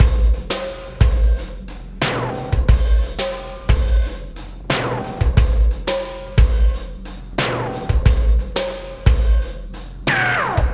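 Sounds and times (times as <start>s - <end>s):
processed drumkit beat: 0.0s - 10.7s.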